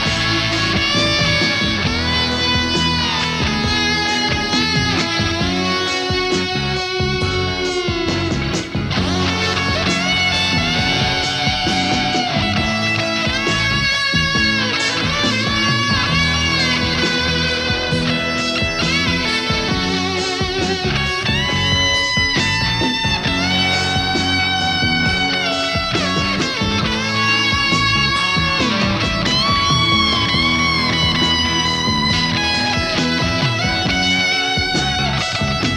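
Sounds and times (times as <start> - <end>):
fuzz pedal guitar solo: 0.0 - 35.7.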